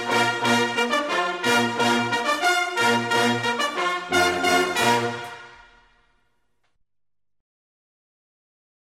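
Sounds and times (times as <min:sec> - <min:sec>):
bersaglieri military brass band playing: 0:00.0 - 0:06.2.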